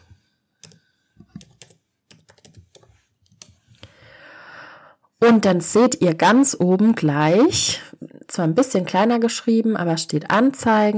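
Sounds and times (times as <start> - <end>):
typing a search term for sneakers on a computer keyboard: 0.6 - 3.6
speech: 5.2 - 7.8, 8.4 - 10.9.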